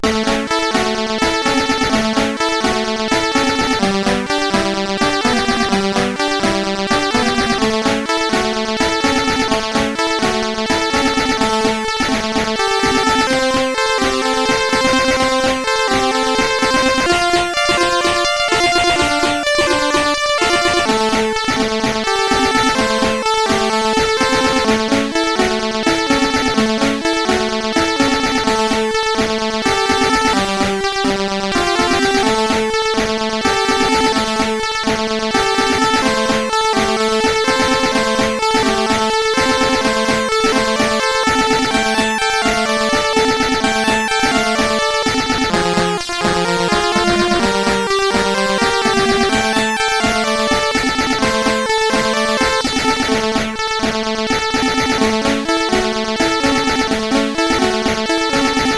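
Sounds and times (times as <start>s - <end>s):
SID CSG8580R5 chiptune song: 0.0s - 58.7s.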